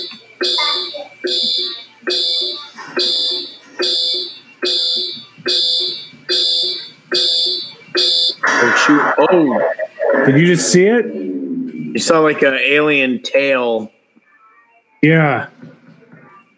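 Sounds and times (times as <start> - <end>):
fire alarm buzzing in electronic bursts: 0.0 - 12.9
speech: 10.3 - 11.2, 12.0 - 14.0, 15.0 - 15.6.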